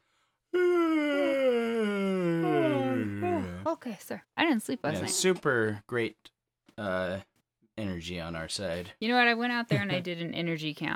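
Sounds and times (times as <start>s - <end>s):
long loud voiced yawn: 0.5s - 3.7s
speech: 3.7s - 10.9s.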